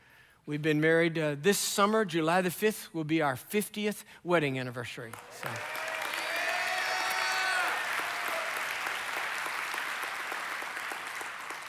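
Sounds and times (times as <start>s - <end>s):
speech: 0.5s - 5.8s
audience applause: 5.1s - 11.6s.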